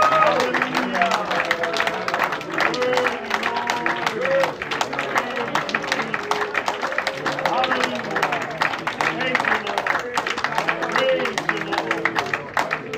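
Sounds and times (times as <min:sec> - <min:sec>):
church congregation clapping in praise to God: 0:00.0 - 0:12.9.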